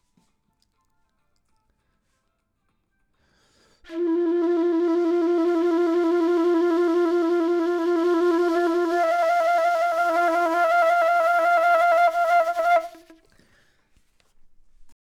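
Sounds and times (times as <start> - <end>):
flute: 3.8 - 13.3.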